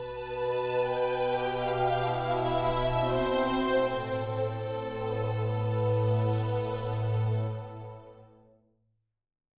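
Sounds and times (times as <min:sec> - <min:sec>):
solo strings: 0:00.0 - 0:08.3.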